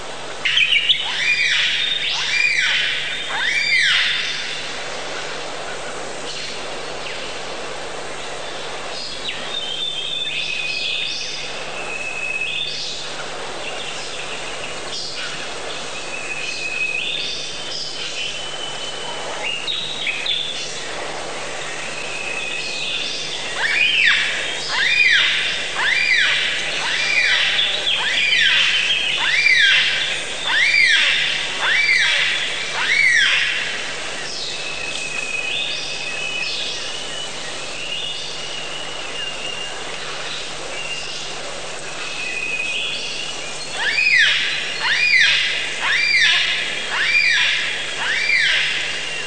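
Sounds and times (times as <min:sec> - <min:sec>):
steady hiss: 0:00.0 - 0:49.2
bird singing: 0:00.4 - 0:05.3, 0:08.2 - 0:49.2.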